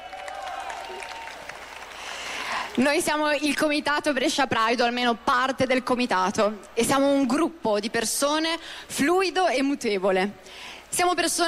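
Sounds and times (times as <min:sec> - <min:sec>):
audience applause at a Pride event in Brescia: 0:00.0 - 0:02.9
speech: 0:02.8 - 0:11.4.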